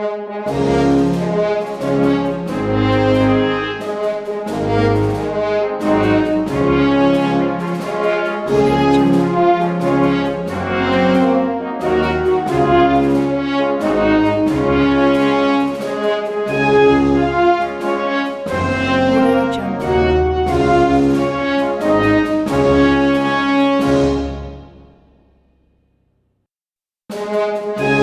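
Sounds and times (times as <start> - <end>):
orchestral brass fanfare: 0.0 - 25.2, 27.2 - 28.0.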